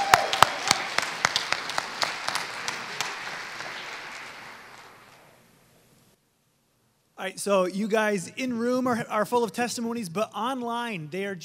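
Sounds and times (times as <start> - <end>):
crowd applause: 0.0 - 5.4
speech: 7.2 - 11.4.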